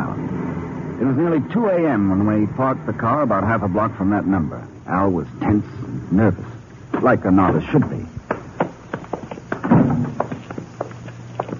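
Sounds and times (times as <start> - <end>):
speech: 1.0 - 8.2
footsteps at night: 6.9 - 11.5.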